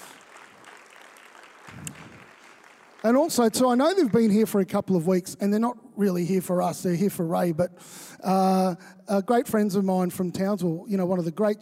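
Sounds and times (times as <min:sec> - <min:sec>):
church audience applause: 0:00.0 - 0:04.4
speech: 0:03.0 - 0:11.6.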